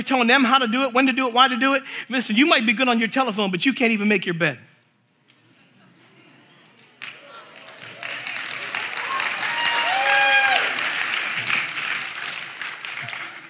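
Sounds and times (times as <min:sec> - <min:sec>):
speech: 0:00.0 - 0:04.7
audience clapping: 0:06.8 - 0:13.4.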